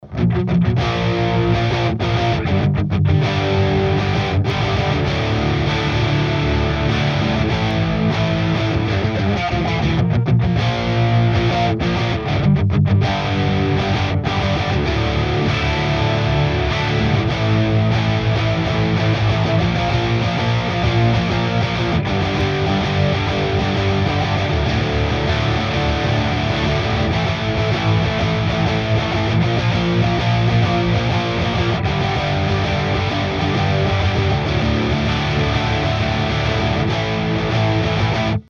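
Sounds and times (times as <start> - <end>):
guitars: 0.0 - 38.4.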